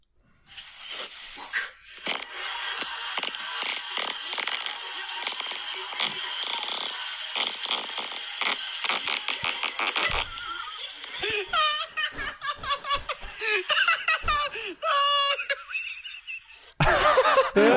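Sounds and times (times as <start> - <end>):
long sputtering fart: 0.8 - 13.5
laughter: 2.0 - 17.7.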